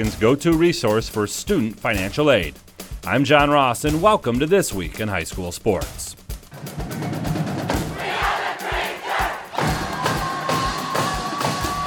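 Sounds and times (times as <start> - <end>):
speech: 0.0 - 6.9
rhythmic thuds and stomps: 0.0 - 11.8
Traverse City West Bleacher Creatures student section roaring and chanting: 7.8 - 11.8.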